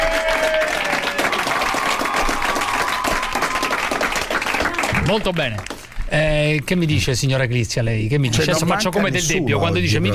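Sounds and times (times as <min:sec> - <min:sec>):
audience applause: 0:00.0 - 0:06.0
speech: 0:05.1 - 0:10.1.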